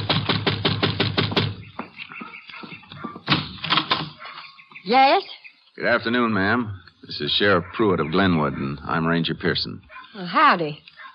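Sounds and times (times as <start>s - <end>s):
knocking on a door: 0.0s - 1.9s
speech: 4.9s - 10.9s.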